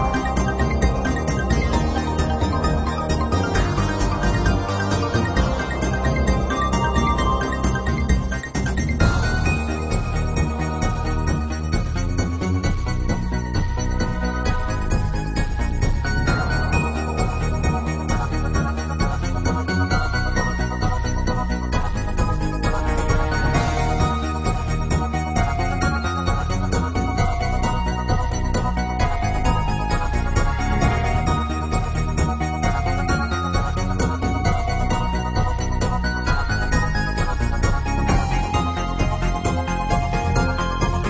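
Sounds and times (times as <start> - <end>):
music: 0.0 - 41.0.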